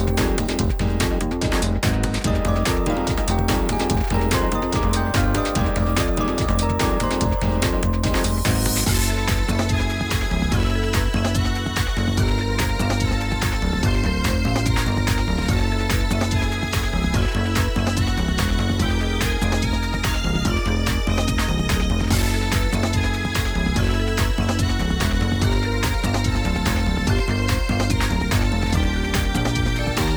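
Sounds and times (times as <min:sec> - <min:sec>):
shooting game background music: 0:00.0 - 0:30.1.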